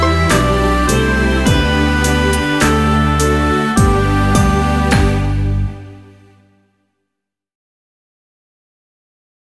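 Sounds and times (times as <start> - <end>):
violin playing: 0.0 - 6.6.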